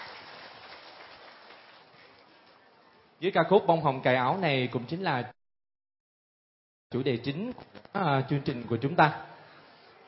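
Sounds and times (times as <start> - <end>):
audience applause: 0.0 - 2.5
speech: 3.2 - 5.4, 6.9 - 9.3.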